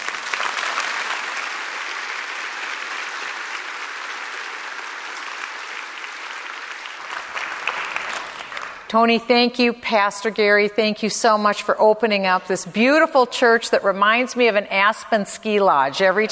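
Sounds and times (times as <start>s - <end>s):
church audience applause welcoming Michelle Bachmann to the stage: 0.0s - 8.9s
speech: 8.9s - 16.2s.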